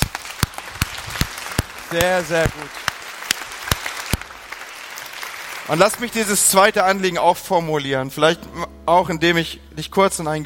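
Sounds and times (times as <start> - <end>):
audience applause: 0.0 - 6.6
speech: 1.9 - 2.8, 5.7 - 10.4.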